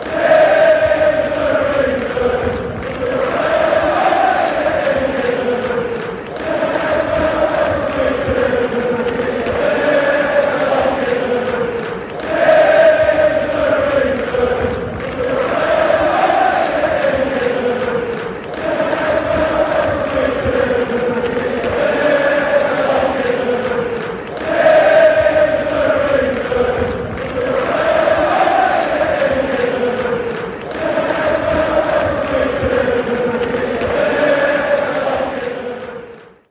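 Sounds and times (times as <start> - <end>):
football fans chanting a player chant: 0.0 - 36.5.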